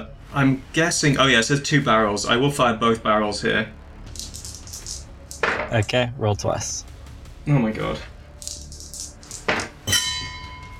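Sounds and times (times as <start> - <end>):
speech: 0.0 - 3.8, 5.7 - 8.1
gong: 9.9 - 10.7.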